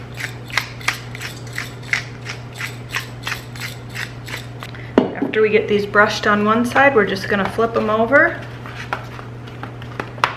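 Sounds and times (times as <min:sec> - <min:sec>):
pepper grinder grinding pepper: 0:00.0 - 0:04.7
low steady hum: 0:00.0 - 0:10.3
speech: 0:05.3 - 0:08.5.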